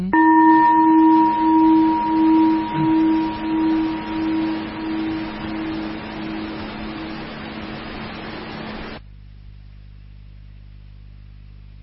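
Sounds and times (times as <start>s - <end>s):
ringing bell: 0.2s - 7.8s.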